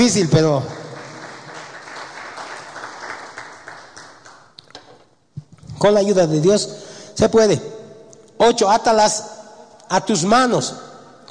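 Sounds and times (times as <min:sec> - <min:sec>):
speech: 0:00.0 - 0:00.8, 0:05.8 - 0:07.8, 0:08.4 - 0:09.3, 0:09.9 - 0:10.9
church congregation applauding in praise of the Lord: 0:00.0 - 0:05.0.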